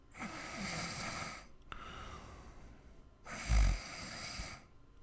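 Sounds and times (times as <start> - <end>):
man snoring: 0.2 - 1.5, 3.3 - 4.6.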